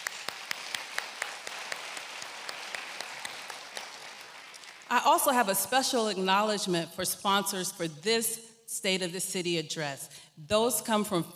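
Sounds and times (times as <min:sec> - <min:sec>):
audience applause: 0:00.0 - 0:04.9
speech: 0:04.9 - 0:11.3.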